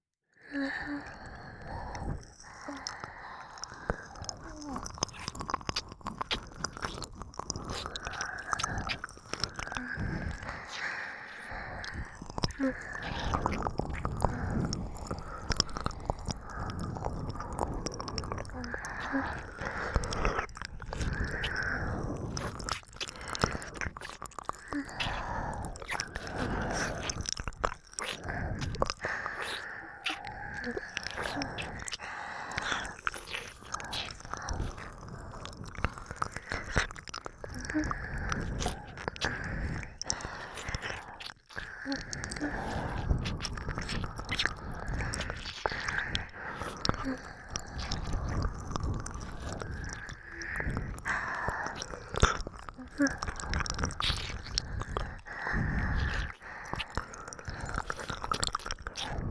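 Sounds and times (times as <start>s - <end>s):
licking of both ears: 0.5s - 59.2s
rhythmic oral sucking sounds: 0.5s - 59.2s.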